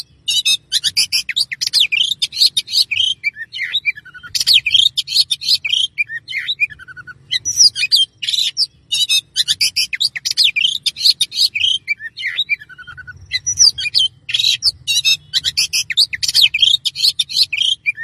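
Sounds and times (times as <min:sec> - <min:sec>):
Oriental magpie-robin song: 0:00.0 - 0:18.0.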